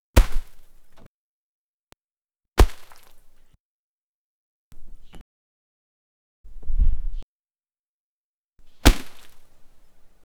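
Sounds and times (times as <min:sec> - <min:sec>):
shuriken being thrown: 0:00.2 - 0:00.7, 0:02.6 - 0:03.2, 0:08.8 - 0:09.5.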